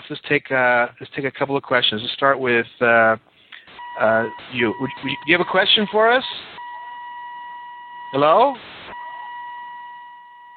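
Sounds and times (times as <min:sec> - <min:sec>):
speech: 0:00.1 - 0:03.3, 0:04.0 - 0:06.6, 0:08.1 - 0:08.9
car warning beeper going off: 0:03.8 - 0:10.5.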